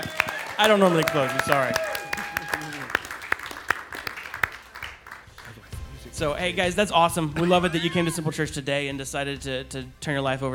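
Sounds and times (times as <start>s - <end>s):
audience clapping: 0.0s - 6.0s
speech: 0.6s - 1.9s, 6.2s - 10.5s
laughter: 7.4s - 8.3s.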